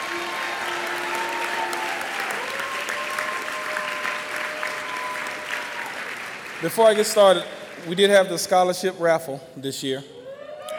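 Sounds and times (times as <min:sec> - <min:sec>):
audience applause: 0:00.0 - 0:08.2
speech: 0:06.6 - 0:10.2.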